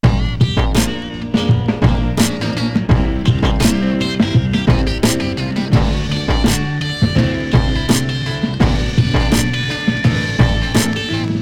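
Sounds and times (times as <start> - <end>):
music loop: 0.0 - 11.4.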